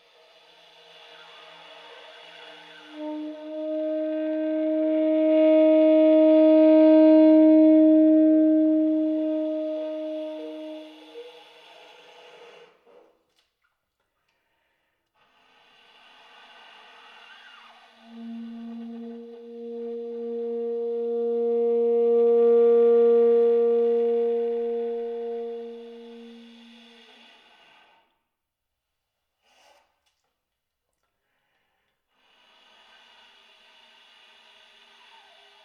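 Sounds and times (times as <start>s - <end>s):
tenor saxophone air tones and breathy notes: 1.0s - 12.8s, 17.2s - 28.1s.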